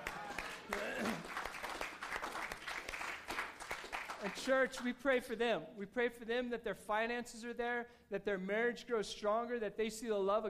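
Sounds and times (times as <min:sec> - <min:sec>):
audience clapping: 0:00.0 - 0:05.0
speech: 0:04.2 - 0:10.4.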